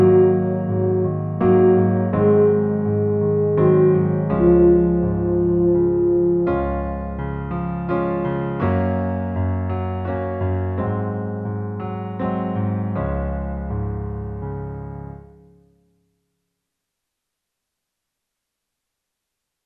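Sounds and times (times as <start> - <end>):
music in E flat: 0.0 - 16.4.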